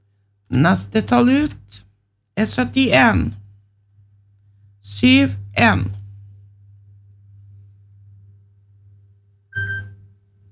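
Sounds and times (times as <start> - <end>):
speech: 0.5 - 3.4, 4.8 - 6.0
low hum: 3.9 - 10.2.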